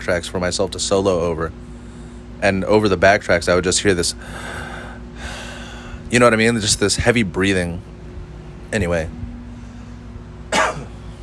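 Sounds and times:
speech: 0.0s - 1.7s, 2.4s - 4.7s, 6.1s - 7.9s, 8.7s - 9.2s
dry cough from a throat tickle: 10.5s - 11.0s.

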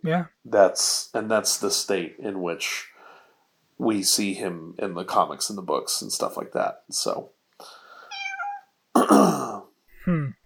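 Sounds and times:
speech: 0.0s - 2.9s, 3.8s - 7.8s, 9.0s - 10.3s
pet cat meowing: 8.1s - 8.7s.

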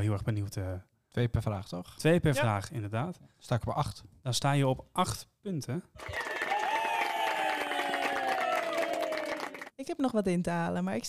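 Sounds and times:
speech: 0.0s - 6.3s, 9.8s - 11.0s
applause: 6.0s - 9.8s.

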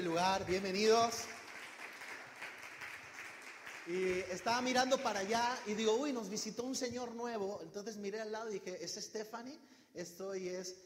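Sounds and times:
speech: 0.0s - 1.4s, 3.9s - 10.8s
audience applause: 0.0s - 5.7s.

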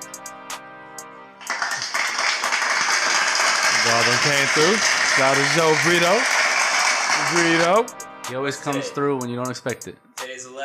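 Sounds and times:
people clapping: 1.4s - 7.8s
speech: 4.0s - 6.4s, 7.2s - 10.1s.

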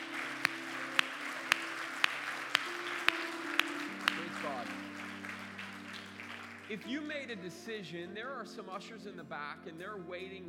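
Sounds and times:
audience applause: 0.0s - 7.1s
speech: 6.7s - 10.4s.

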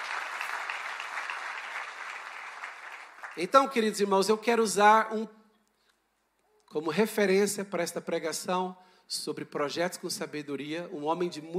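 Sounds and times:
audience applause: 0.0s - 3.6s
speech: 3.4s - 5.4s, 6.7s - 11.5s.

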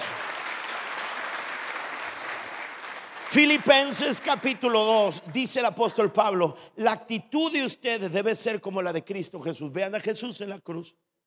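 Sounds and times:
audience applause: 0.0s - 5.6s
speech: 3.3s - 11.1s.

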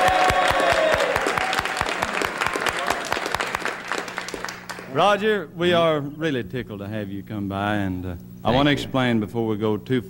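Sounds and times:
audience applause welcoming a guest on a country music TV show: 0.0s - 5.0s
faint steady hum: 0.0s - 10.0s
speech: 5.0s - 10.0s.

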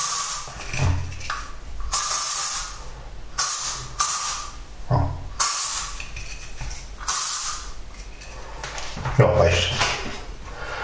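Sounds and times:
spray bottle spraying: 0.0s - 2.8s, 3.4s - 4.6s, 5.4s - 7.8s
speech: 9.2s - 9.8s.

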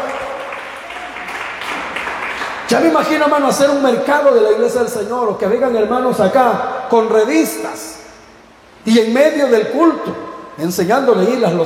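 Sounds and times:
crowd clapping: 0.0s - 3.3s
speech: 2.7s - 8.0s, 8.8s - 11.6s.

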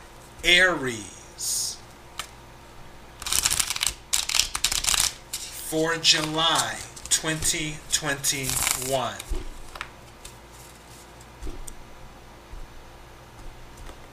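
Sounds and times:
speech: 0.4s - 1.7s, 5.7s - 9.5s
tarot cards being shuffled for a reading: 3.2s - 11.8s.

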